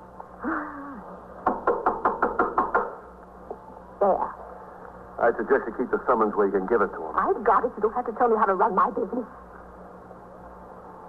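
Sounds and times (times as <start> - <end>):
knocking on a door: 1.4 - 3.0
speech: 5.3 - 9.6.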